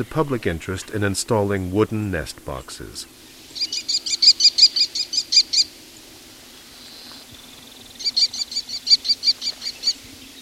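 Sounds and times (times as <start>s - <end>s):
speech: 0.0s - 3.8s
American kestrel calls: 3.4s - 5.8s, 6.7s - 10.4s.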